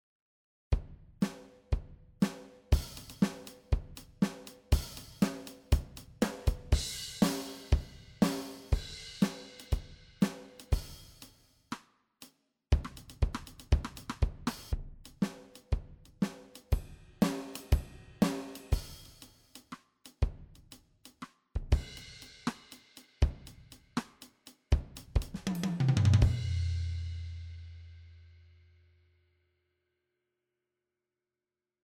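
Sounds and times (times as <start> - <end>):
pop drum pattern: 2.2 - 11.3, 12.7 - 26.6.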